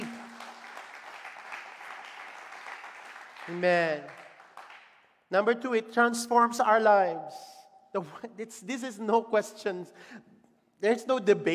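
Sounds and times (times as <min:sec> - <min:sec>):
crowd applauding: 0:00.0 - 0:05.0
speech: 0:03.5 - 0:04.2, 0:05.3 - 0:11.5.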